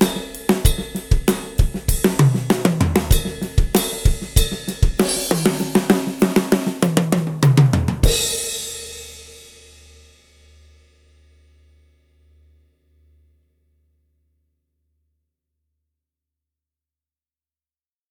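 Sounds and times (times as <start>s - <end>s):
Pearl Export drums with snares on: 0.0s - 8.7s.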